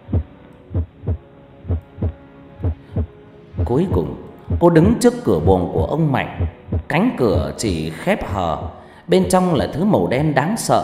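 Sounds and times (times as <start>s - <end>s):
pounding heartbeat: 0.1s - 3.8s, 4.5s - 7.5s
speech: 3.7s - 10.8s
woman breathing softly and anxiously: 8.8s - 9.1s.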